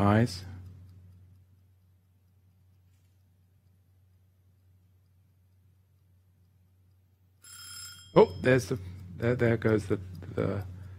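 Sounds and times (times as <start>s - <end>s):
person talking: 0.0s - 0.6s, 8.1s - 10.8s
electronic alarm ringing: 7.4s - 8.7s.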